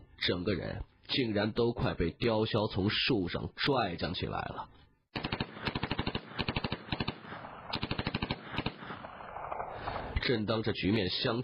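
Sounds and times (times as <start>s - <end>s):
speech: 0.2s - 4.9s, 10.3s - 11.4s
submachine gun fire: 5.2s - 10.2s.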